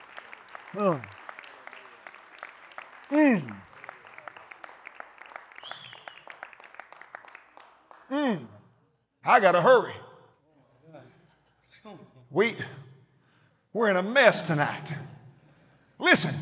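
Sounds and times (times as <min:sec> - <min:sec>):
audience clapping hands: 0:00.0 - 0:08.8
speech: 0:00.7 - 0:01.2, 0:03.1 - 0:03.7, 0:08.1 - 0:08.6, 0:09.2 - 0:10.0, 0:11.8 - 0:12.8, 0:13.8 - 0:15.1, 0:16.0 - 0:16.3.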